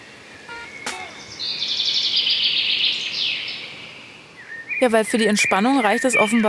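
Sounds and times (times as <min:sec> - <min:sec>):
birdsong warbling trill: 0:00.4 - 0:06.4
sharp click: 0:00.8 - 0:01.2
speech: 0:04.8 - 0:06.4.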